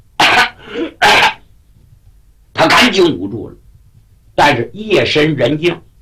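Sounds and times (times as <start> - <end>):
man coughing from the acrid smell of burning: 0.2 - 1.4
speech: 2.8 - 3.6, 4.4 - 5.8.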